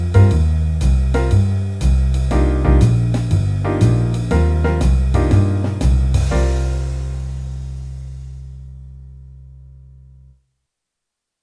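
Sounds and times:
jazz piano improvisation in C minor: 0:00.0 - 0:09.1.

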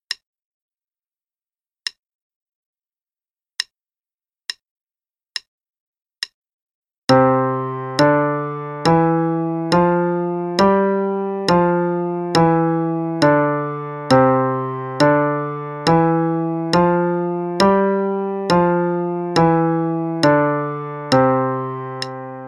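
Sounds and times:
five finger pattern exercise in C and G: 0:07.1 - 0:22.4.

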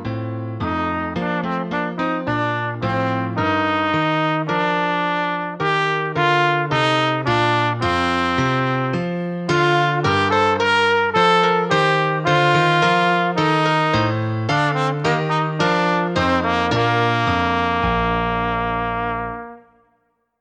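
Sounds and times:
solo trumpet playing a march: 0:00.6 - 0:19.9.

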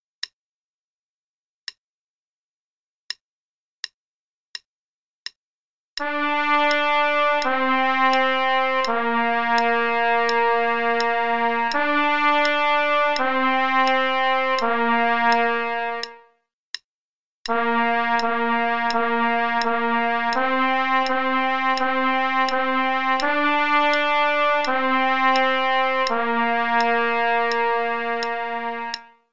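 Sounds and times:
trumpet play-along: 0:06.0 - 0:16.3, 0:17.5 - 0:29.3.

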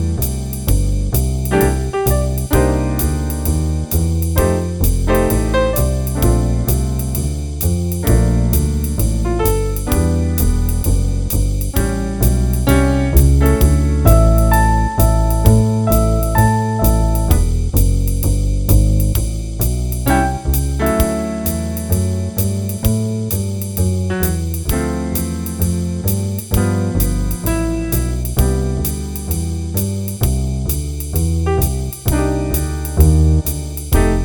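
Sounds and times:
jazz improvisation play-along backing for soloing: 0:00.0 - 0:34.2.

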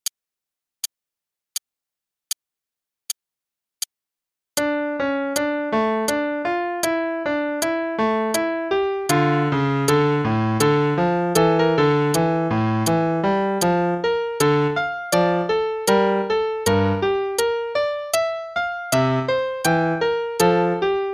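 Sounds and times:
play-along prelude in D minor: 0:04.6 - 0:21.1.

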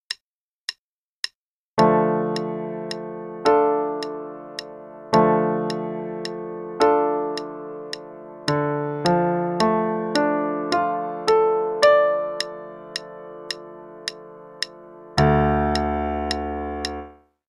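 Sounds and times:
D minor chords: 0:01.8 - 0:17.2.

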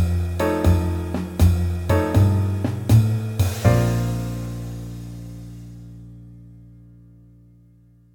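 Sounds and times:
rhythm section playing: 0:00.0 - 0:05.8
blues scale melody: 0:00.0 - 0:07.6.

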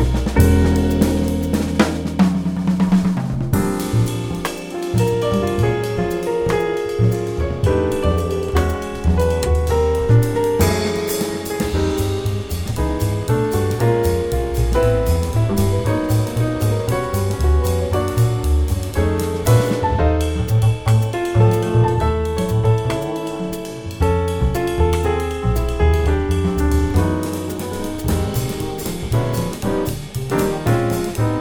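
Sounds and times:
modern jazz piano play-along in Eb: 0:00.0 - 0:31.3.

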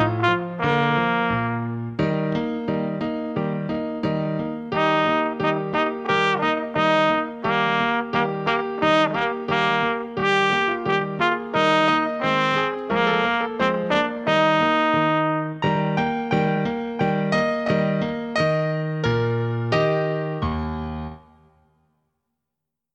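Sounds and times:
solo trumpet: 0:00.0 - 0:02.0, 0:04.7 - 0:15.8
piano accompaniment: 0:00.0 - 0:21.9.

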